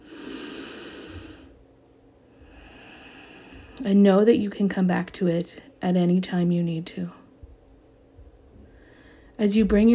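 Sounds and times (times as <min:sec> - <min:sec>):
deep breath in during a guided meditation: 0:00.0 - 0:01.6, 0:02.3 - 0:03.8, 0:08.6 - 0:09.4
speech: 0:03.8 - 0:07.2, 0:09.4 - 0:09.9.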